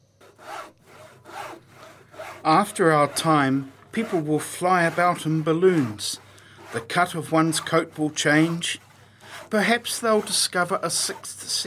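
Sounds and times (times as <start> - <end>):
hand saw cutting wood while building set pieces: 0.2 - 11.6
speech: 2.4 - 8.8, 9.4 - 11.6.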